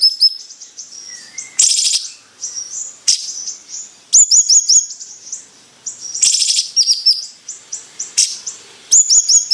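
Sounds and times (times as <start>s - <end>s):
bird song in bursts of sharp high chips and rattling trills: 0.0s - 9.5s.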